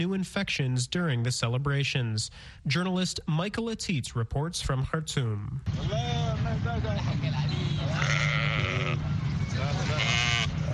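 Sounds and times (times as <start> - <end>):
speech: 0.0 - 10.1
low rumble of outdoor activity: 0.0 - 10.7
sheep bleating at roadside market: 7.8 - 9.1, 9.8 - 10.6.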